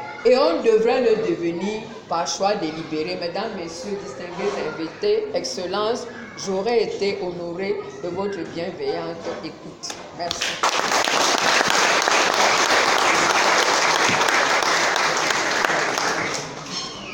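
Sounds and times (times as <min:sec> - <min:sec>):
speech: 0:00.2 - 0:11.6
audience applause: 0:10.4 - 0:16.7.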